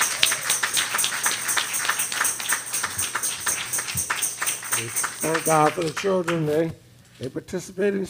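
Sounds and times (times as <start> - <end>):
audience applauding: 0.0 - 6.6
speech: 4.8 - 8.0.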